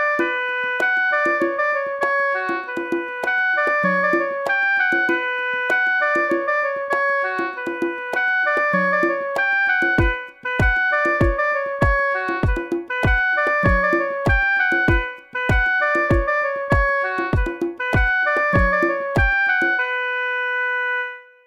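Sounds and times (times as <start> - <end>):
oboe: 0.2 - 21.1.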